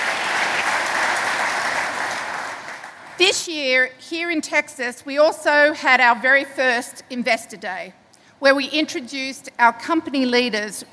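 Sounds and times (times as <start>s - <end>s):
large audience applause: 0.0s - 3.2s
speech: 3.2s - 10.9s.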